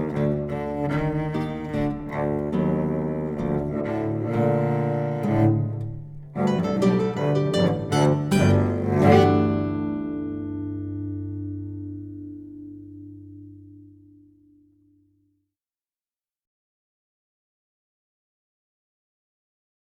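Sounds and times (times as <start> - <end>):
guitar: 0.0 - 15.2.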